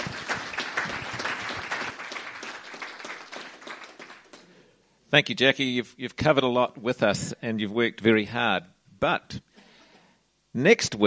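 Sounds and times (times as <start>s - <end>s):
audience applause: 0.0s - 4.5s
speech: 5.1s - 9.4s, 10.6s - 11.0s.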